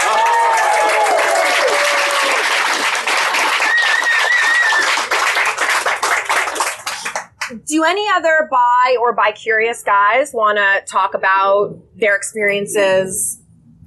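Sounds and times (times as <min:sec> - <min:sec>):
audience clapping: 0:00.0 - 0:07.6
speech: 0:07.7 - 0:13.4.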